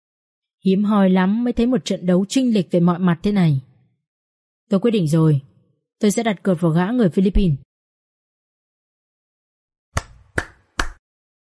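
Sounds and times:
speech: 0.6s - 3.7s, 4.7s - 7.6s
sharp hand claps: 10.0s - 11.0s.

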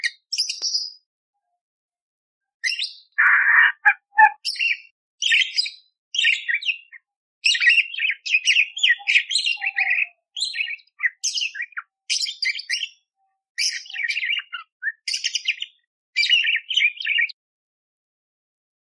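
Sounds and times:
Eurasian tree sparrow fighting song chirps: 2.6s - 17.3s.

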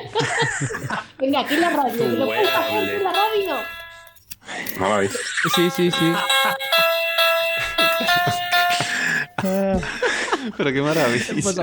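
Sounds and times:
speech: 0.6s - 3.8s, 4.6s - 6.6s, 9.4s - 11.6s
musical piano necktie playing over a video call: 1.4s - 4.2s, 5.5s - 9.7s.

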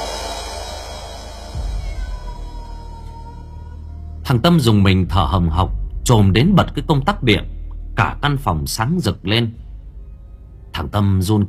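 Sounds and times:
cat wailing mournfully: 1.5s - 4.2s
speech: 4.3s - 9.6s, 10.8s - 11.4s.

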